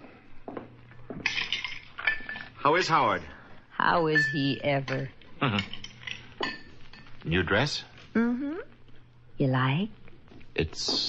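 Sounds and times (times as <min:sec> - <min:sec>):
glasses and utensils clinking while a drink is mixed: 0:01.2 - 0:02.6, 0:04.1 - 0:07.2
speech: 0:02.6 - 0:05.8, 0:07.2 - 0:08.6, 0:09.4 - 0:10.0, 0:10.6 - 0:11.0.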